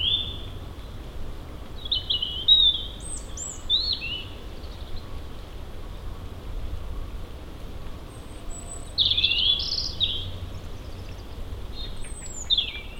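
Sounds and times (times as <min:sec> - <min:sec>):
birds: 0:00.0 - 0:01.0, 0:01.7 - 0:05.6, 0:08.0 - 0:12.9.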